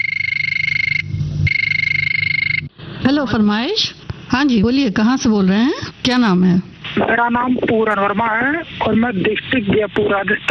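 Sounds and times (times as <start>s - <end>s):
telephone ringing with a shrill trilling electronic tone: 0.0s - 2.7s
speech: 3.1s - 10.4s.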